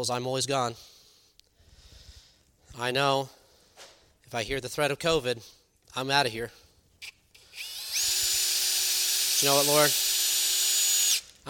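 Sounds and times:
speech: 0.0 - 1.0, 2.8 - 6.6, 9.4 - 10.0
power drill driving screws: 7.4 - 11.4.

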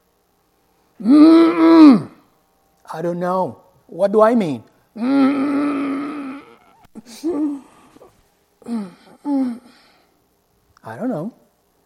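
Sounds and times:
speech: 1.0 - 1.4, 3.0 - 5.6, 7.0 - 7.6, 8.6 - 9.8, 10.8 - 11.4
voice imitating a groaning sound: 1.0 - 2.2, 5.0 - 8.0, 8.6 - 9.8.

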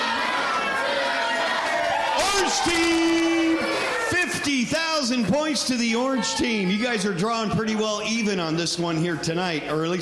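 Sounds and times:
children's team cheering and shouting: 0.0 - 8.0
speech: 2.4 - 3.7, 4.4 - 9.9.

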